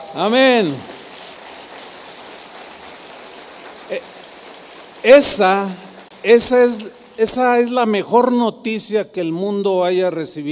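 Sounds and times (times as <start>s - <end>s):
crowd audience applause: 0.0s - 6.5s
speech: 0.1s - 0.9s, 3.9s - 4.1s, 5.0s - 10.4s.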